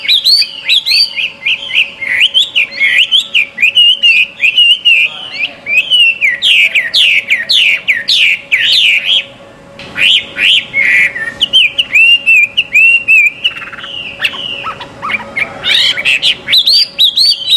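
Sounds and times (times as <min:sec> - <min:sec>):
Chinese hwamei song: 0:00.0 - 0:09.3, 0:10.0 - 0:17.5.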